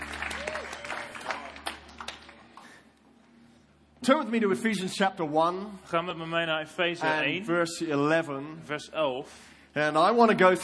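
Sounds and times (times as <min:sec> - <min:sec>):
audience applause for the band: 0:00.0 - 0:02.8
speech: 0:04.0 - 0:10.6.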